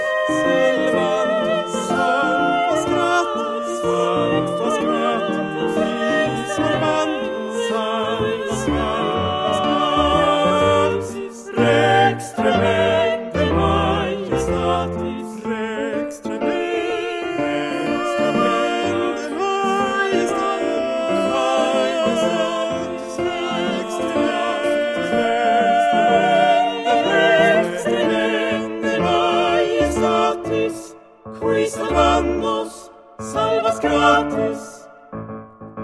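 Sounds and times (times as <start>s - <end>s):
choral piece: 0.0s - 35.8s.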